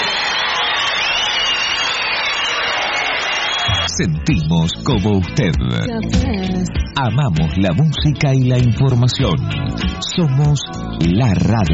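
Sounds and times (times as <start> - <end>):
applause for a children's choir: 0.0 - 3.9
speech: 4.0 - 11.7.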